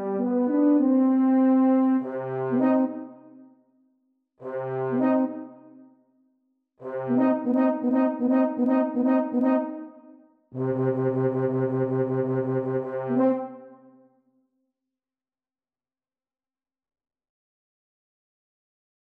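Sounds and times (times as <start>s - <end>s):
two euphoniums and tuba playing: 0.0s - 3.1s, 4.4s - 5.5s, 6.8s - 9.9s, 10.6s - 13.6s.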